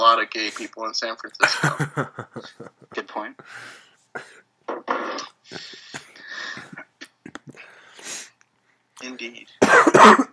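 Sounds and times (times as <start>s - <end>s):
speech: 0.0s - 4.5s, 9.0s - 10.3s
laughter: 1.5s - 3.0s
cough: 9.6s - 10.3s.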